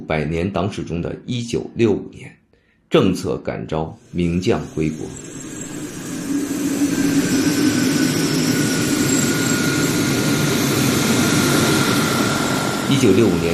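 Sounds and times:
speech: 0:00.1 - 0:05.5, 0:12.9 - 0:13.5
jet airliner landing: 0:04.6 - 0:13.5.

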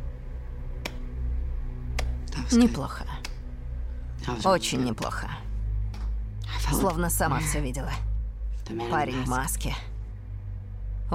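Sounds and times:
low steady hum: 0:00.0 - 0:11.1
woman clapping her hands slowly in a film scene: 0:00.8 - 0:01.1, 0:01.9 - 0:02.2
speech: 0:02.4 - 0:03.1, 0:04.2 - 0:05.4, 0:06.7 - 0:08.1, 0:08.7 - 0:09.9.

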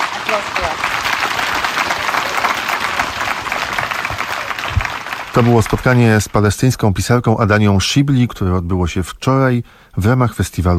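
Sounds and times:
audience applause for a translator and a Palestinian writer at a literature festival: 0:00.0 - 0:06.7
speech: 0:00.3 - 0:00.9, 0:05.4 - 0:10.7.

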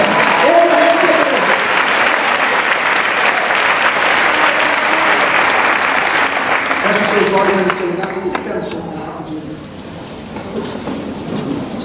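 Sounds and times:
audience at a church service applauding: 0:00.0 - 0:08.8.

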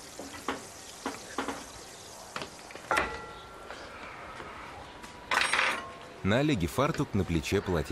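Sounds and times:
roast chicken sizzling: 0:00.0 - 0:04.3
speech: 0:06.3 - 0:07.9.

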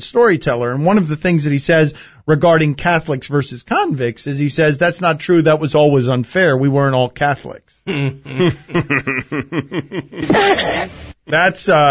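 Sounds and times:
speech: 0:00.0 - 0:11.8
laughter: 0:07.9 - 0:10.7
man's muffled sneeze: 0:10.2 - 0:11.0.

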